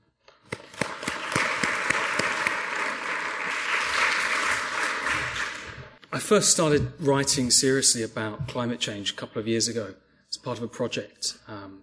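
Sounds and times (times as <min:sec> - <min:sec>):
audience applause welcoming a speaker: 0:00.6 - 0:05.9
speech: 0:06.2 - 0:11.8.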